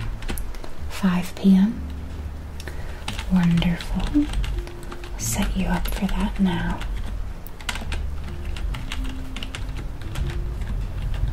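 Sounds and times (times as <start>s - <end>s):
low constant rumbling background: 0.0s - 11.3s
speech: 1.0s - 1.9s, 3.3s - 4.5s, 5.2s - 6.9s
fingers typing on a computer keyboard: 3.1s - 11.3s.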